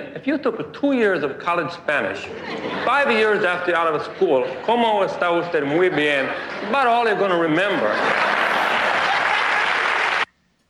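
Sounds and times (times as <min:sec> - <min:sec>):
speech: 0:00.2 - 0:08.6
laughter: 0:02.2 - 0:10.2
audience applause: 0:06.0 - 0:10.3.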